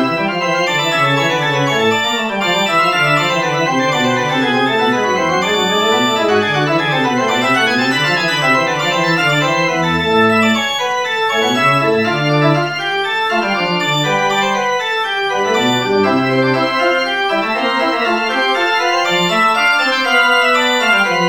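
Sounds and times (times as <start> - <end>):
baroque invention on organ: 0.0 - 21.2.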